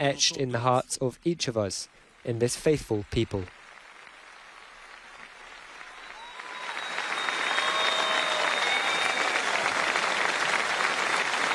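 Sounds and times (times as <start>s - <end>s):
speech: 0.0s - 3.6s
large audience applauding: 2.3s - 11.5s
faint whistles or tones: 5.8s - 10.6s, 11.3s - 11.5s.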